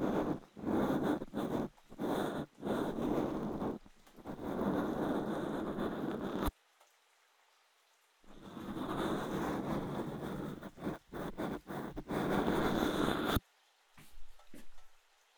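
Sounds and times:
left ear cleaning: 0.0 - 6.5, 8.3 - 13.4.

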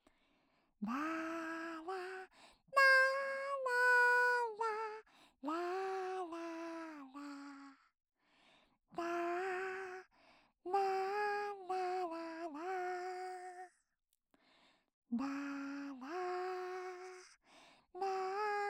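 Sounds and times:
lullaby without reverb: 0.8 - 7.9, 8.9 - 10.1, 10.7 - 13.8, 15.1 - 17.4, 18.0 - 18.6.

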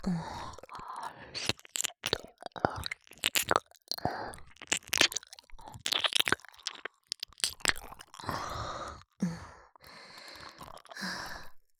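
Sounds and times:
speech: 0.0 - 0.4
breathy sighs: 0.0 - 1.4, 8.2 - 11.5
wet licking and mouth noises from ASMR ear cleaning with the tongue: 0.0 - 9.2, 10.0 - 11.0.

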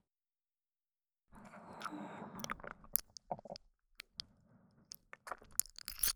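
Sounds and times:
ear licking in the right ear: 1.8 - 4.2, 4.9 - 6.1.

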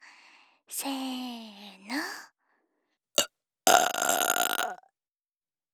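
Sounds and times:
speech: 0.7 - 1.2
person burping: 3.7 - 4.8.

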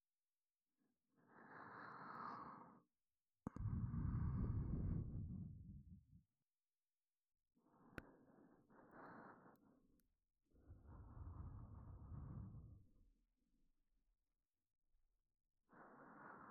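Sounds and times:
breathing in the left ear: 1.1 - 2.9, 3.5 - 6.0, 7.6 - 10.0, 10.6 - 12.9, 15.7 - 16.5.

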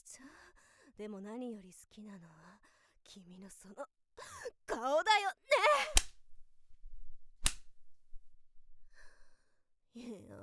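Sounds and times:
speech: 1.0 - 3.9, 4.8 - 5.4
whip crack: 5.8 - 6.2, 7.4 - 7.8.

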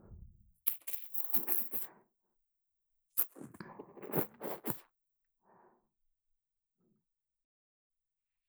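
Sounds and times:
ear cleaning ASMR sounds in the right ear: 0.7 - 1.9, 4.0 - 4.8.

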